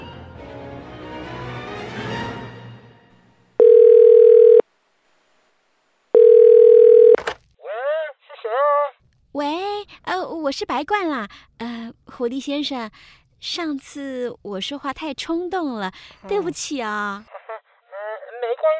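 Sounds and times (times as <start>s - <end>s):
telephone dial tone: 3.6s - 4.6s, 6.1s - 7.3s
speech: 10.5s - 17.3s.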